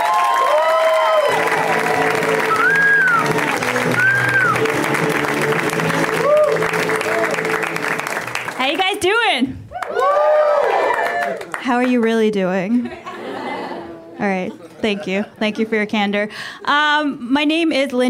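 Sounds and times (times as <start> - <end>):
audience cheers and whoops: 0.0 - 4.8, 5.9 - 7.7, 9.7 - 11.5
audience applause: 0.0 - 12.0
speech: 11.8 - 13.0, 14.2 - 18.0
laughter: 12.8 - 15.8.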